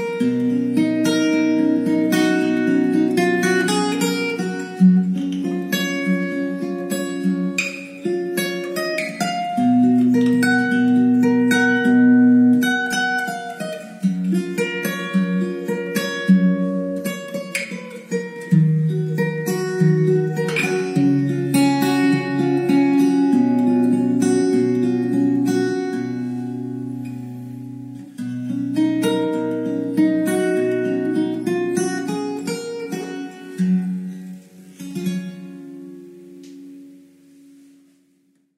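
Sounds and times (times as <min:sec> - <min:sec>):
romantic melody: 0:00.0 - 0:37.7.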